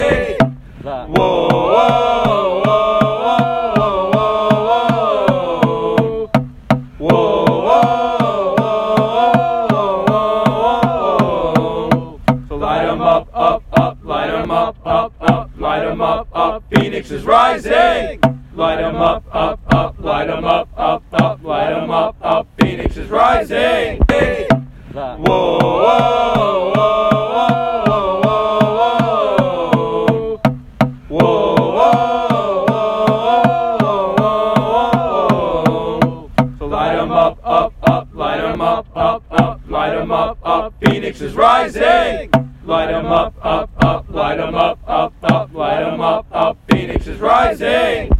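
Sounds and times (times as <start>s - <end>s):
fans chanting: 0.0s - 6.3s, 7.0s - 30.5s, 31.1s - 48.1s.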